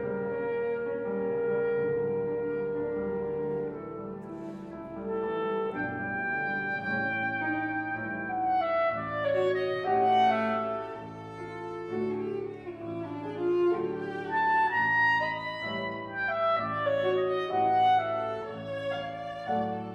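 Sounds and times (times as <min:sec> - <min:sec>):
cello: 0:00.0 - 0:19.9
clarinet: 0:00.0 - 0:19.9
piano: 0:00.0 - 0:19.9.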